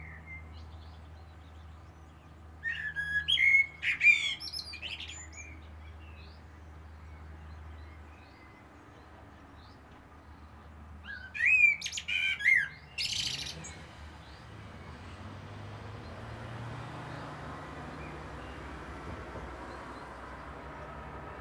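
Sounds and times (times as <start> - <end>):
Common blackbird singing fluty warble with squeaky chatter: 0.0 - 8.8, 11.0 - 18.8.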